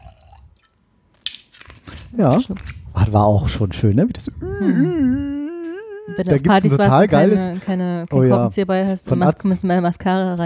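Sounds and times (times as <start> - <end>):
wine pouring into a glass: 0.0 - 0.7
speech: 2.1 - 5.4, 6.1 - 10.4.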